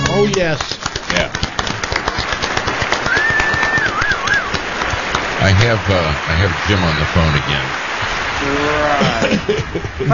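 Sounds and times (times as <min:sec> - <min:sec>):
audience applause: 0:00.0 - 0:10.1
speech: 0:00.3 - 0:01.5, 0:05.4 - 0:10.1
single wavering whistle: 0:03.1 - 0:04.6
laughter: 0:09.0 - 0:10.1.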